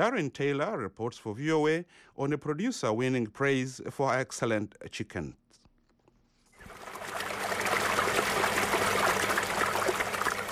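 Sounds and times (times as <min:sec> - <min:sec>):
speech: 0:00.0 - 0:05.4
spring-fed stream water trickling: 0:06.6 - 0:10.4.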